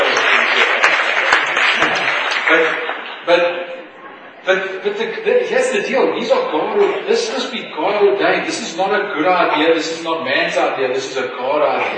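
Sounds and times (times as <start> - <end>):
audience applause: 0.0 - 3.2
speech: 3.3 - 3.6, 4.5 - 11.9.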